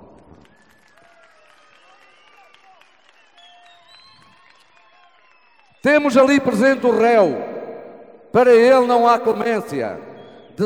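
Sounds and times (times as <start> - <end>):
audience applause: 0.0 - 5.8
speech: 5.8 - 7.5, 8.3 - 10.6.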